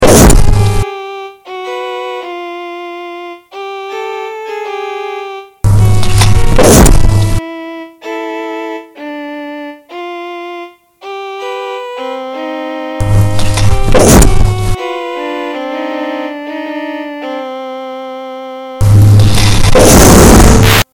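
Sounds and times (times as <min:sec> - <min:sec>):
signal tones: 0:05.7 - 0:07.4, 0:13.0 - 0:14.9, 0:18.8 - 0:20.9.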